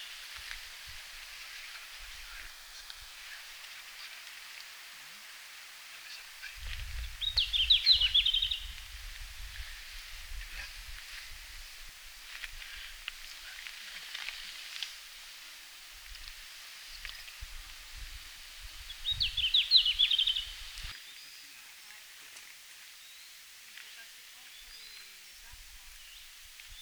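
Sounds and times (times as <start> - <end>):
red-flanked bluetail singing in Finland: 6.1 - 8.8, 18.6 - 21.4.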